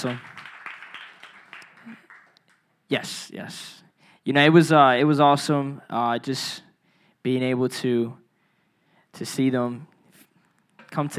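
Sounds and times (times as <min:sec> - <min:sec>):
speech: 0:00.0 - 0:00.3, 0:02.9 - 0:08.2, 0:09.2 - 0:09.9, 0:10.9 - 0:11.1
audience hand clapping: 0:00.0 - 0:02.7.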